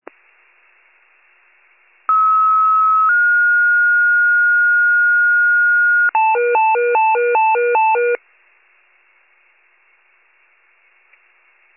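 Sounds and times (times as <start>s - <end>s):
fire pager alert: 2.1s - 4.2s, 5.5s - 8.2s.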